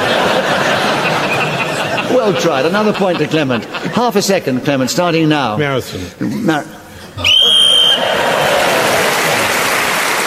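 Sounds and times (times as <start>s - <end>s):
laughter: 0.0s - 5.3s, 6.2s - 10.2s
speech: 2.2s - 7.6s
referee's whistle: 7.2s - 8.1s.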